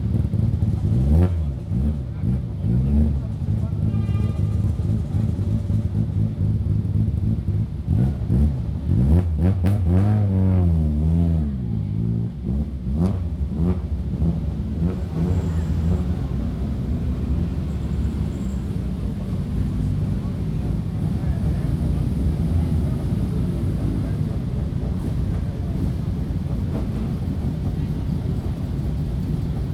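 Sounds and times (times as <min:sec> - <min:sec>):
car engines starting: 0:00.0 - 0:29.7
faint voices: 0:01.4 - 0:06.8, 0:15.0 - 0:29.7.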